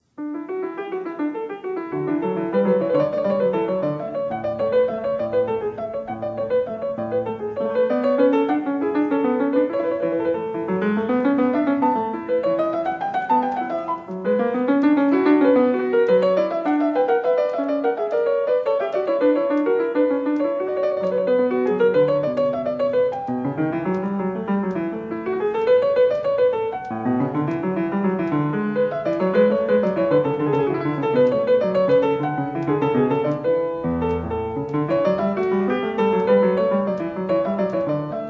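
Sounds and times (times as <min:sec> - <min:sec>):
two-part keyboard invention: 0:01.4 - 0:38.2.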